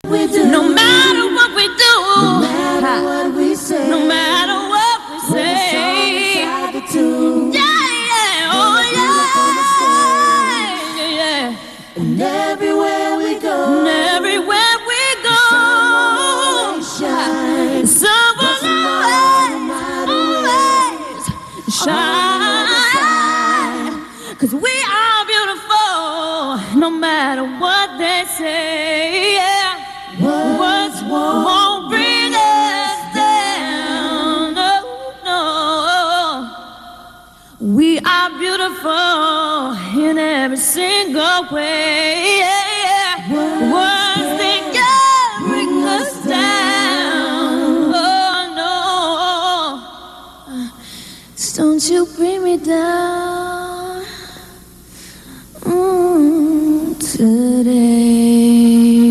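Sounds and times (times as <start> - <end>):
beautiful a cappella singing: 0.0 - 59.0.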